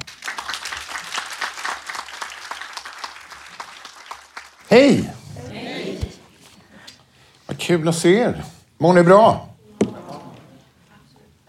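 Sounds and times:
room full of people applauding: 0.0 - 5.2
speech: 4.7 - 5.2, 7.7 - 9.5.

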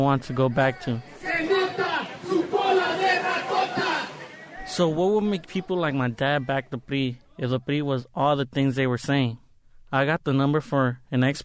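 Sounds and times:
speech: 0.0 - 1.4, 4.7 - 11.4
crowd shouting at political rally: 0.0 - 7.4.

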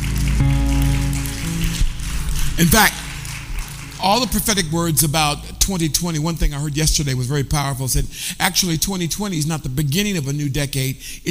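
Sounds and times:
crowd clapping: 0.0 - 6.2
low sustained musical tones: 0.0 - 6.4
speech: 2.6 - 3.0, 4.0 - 11.2.

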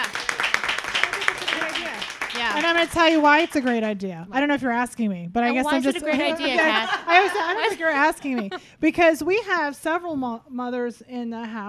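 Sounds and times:
hand clapping: 0.0 - 4.0
speech: 2.7 - 11.6
laughter: 5.5 - 8.7.

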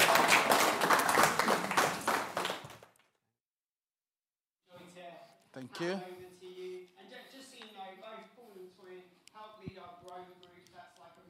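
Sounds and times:
audience applause: 0.0 - 2.9
speech: 5.6 - 6.2.

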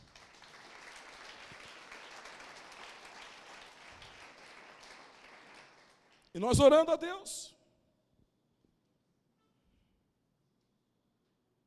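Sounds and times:
audience applauding: 0.0 - 6.3
speech: 6.4 - 7.6.

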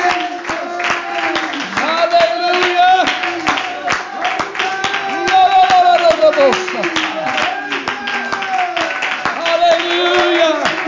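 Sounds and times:
audience clapping hands: 0.0 - 10.8.

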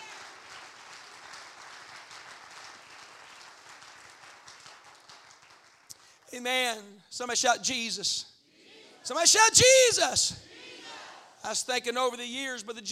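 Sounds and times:
audience clapping: 0.0 - 6.2
speech: 6.3 - 8.3, 9.1 - 10.5, 11.4 - 12.9.

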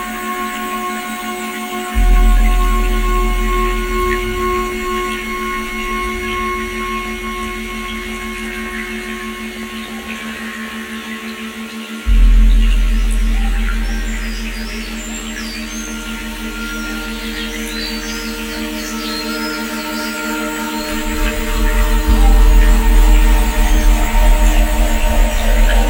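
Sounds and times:
binaural ambient soundtrack of sustained tones: 0.0 - 25.8
deep low swells: 1.9 - 10.5, 12.0 - 19.0, 20.8 - 25.8.

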